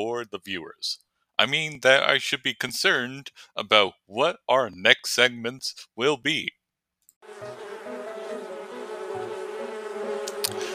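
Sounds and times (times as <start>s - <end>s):
speech: 0.0s - 6.6s
bee buzzing: 7.2s - 10.7s.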